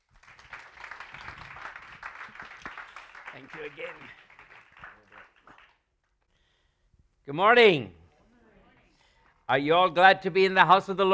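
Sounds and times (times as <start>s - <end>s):
audience applause at a Sunday morning church service: 0.0s - 5.8s
speech: 3.4s - 4.2s, 7.2s - 8.0s, 9.5s - 11.1s.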